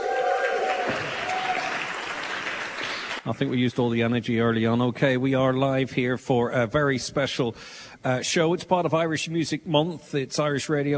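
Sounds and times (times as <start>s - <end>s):
audience applause: 0.0s - 3.6s
speech: 3.3s - 10.9s.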